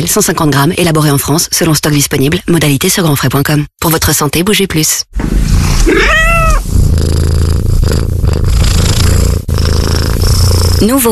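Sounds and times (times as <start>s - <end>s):
speech: 0.0s - 6.4s, 7.0s - 11.0s
cat purring: 5.3s - 11.0s
cat meowing: 5.8s - 6.6s.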